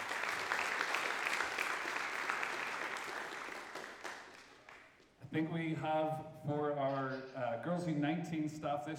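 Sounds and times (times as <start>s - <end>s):
audience applause: 0.0s - 4.9s
speech: 5.3s - 8.9s.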